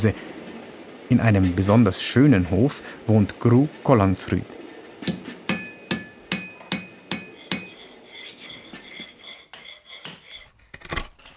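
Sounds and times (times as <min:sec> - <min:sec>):
speech: 0:00.0 - 0:00.3, 0:01.1 - 0:05.2
hammer striking silver while forging spoons: 0:05.0 - 0:08.0.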